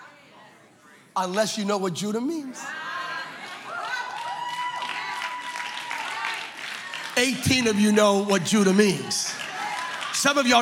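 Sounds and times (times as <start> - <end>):
speech: 1.2 - 2.9, 7.2 - 9.5, 10.2 - 10.5
audience clapping: 3.3 - 10.5.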